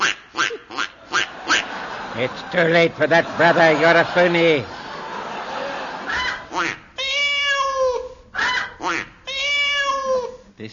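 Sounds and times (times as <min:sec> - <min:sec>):
laughter: 0:01.0 - 0:06.6
speech: 0:02.2 - 0:04.8
person imitating cat meows: 0:07.0 - 0:08.6, 0:09.3 - 0:10.4.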